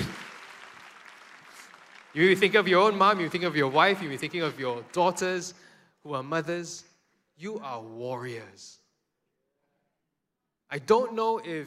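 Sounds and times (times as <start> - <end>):
audience applause: 0.0 - 5.5
speech: 2.1 - 8.8, 10.7 - 11.6.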